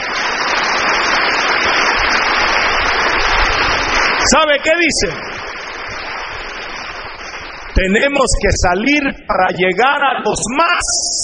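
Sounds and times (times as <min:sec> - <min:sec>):
applause for the pastors: 0:00.0 - 0:08.9
speech: 0:04.3 - 0:05.3, 0:07.8 - 0:11.2.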